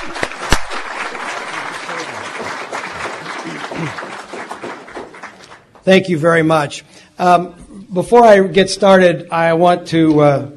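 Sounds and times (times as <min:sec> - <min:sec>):
sizable crowd applauding: 0:00.0 - 0:05.8
speech: 0:03.8 - 0:04.0, 0:05.8 - 0:10.5.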